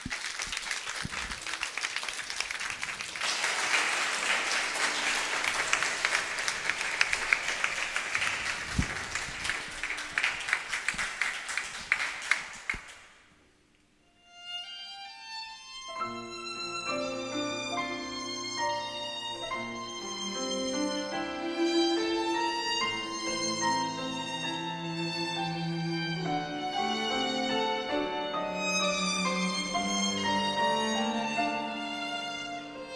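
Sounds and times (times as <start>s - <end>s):
audience applause: 0.0s - 13.1s
piano and orchestral music: 14.2s - 32.9s.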